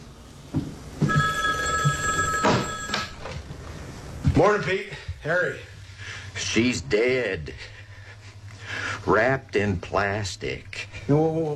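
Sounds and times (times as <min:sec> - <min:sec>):
telephone bell ringing: 0:01.0 - 0:03.4
speech: 0:04.4 - 0:05.7, 0:06.4 - 0:07.8, 0:09.0 - 0:11.5.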